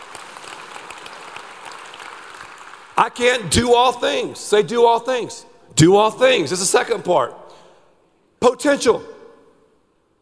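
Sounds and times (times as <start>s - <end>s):
audience clapping: 0.0s - 3.5s
speech: 3.0s - 7.6s, 8.4s - 9.1s.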